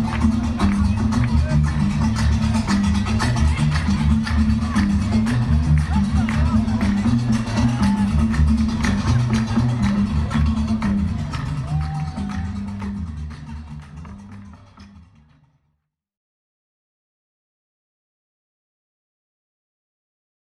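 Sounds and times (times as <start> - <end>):
gnawa music: 0.0 - 15.6.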